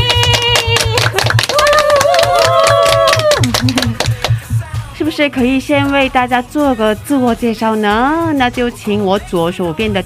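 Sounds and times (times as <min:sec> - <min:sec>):
applause: 0:00.0 - 0:04.4
speech: 0:05.2 - 0:10.0.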